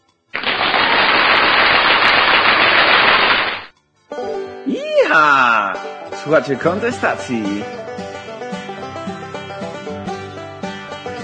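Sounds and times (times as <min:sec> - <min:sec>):
loud dense burst of applause: 0:00.4 - 0:03.7
speech: 0:05.1 - 0:07.8.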